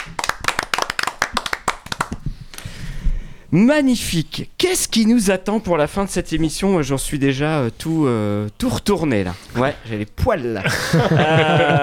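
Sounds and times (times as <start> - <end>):
audience clapping: 0.0 - 2.2
speech: 3.5 - 11.8
laughter: 10.6 - 11.8.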